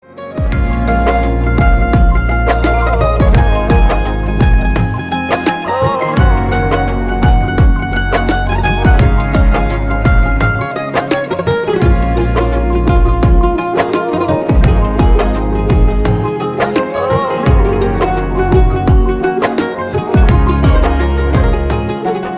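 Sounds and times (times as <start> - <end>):
instrumental music: 0.0 - 22.3.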